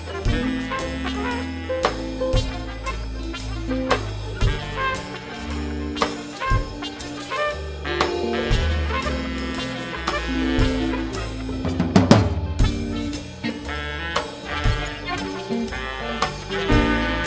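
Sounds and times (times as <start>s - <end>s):
amorphous processed attack sound: 0.3s - 17.2s.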